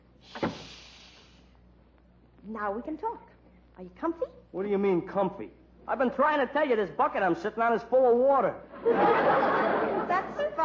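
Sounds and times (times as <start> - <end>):
quiet hiss: 0.0 - 8.7
closet door swinging shut: 0.3 - 0.8
speech: 2.5 - 9.7
laughter: 8.7 - 10.6.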